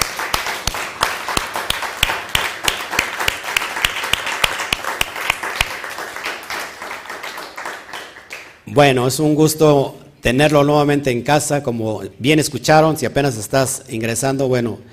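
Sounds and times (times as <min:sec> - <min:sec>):
crowd applause: 0:00.0 - 0:08.6
loud rhythmic clap: 0:00.0 - 0:08.7
speech: 0:08.7 - 0:14.9.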